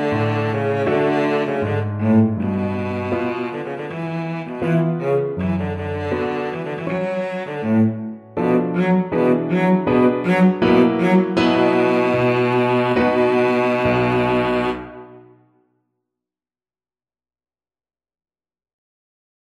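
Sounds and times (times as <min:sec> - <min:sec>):
cello playing a Romanian folk dance: 0:00.0 - 0:15.2.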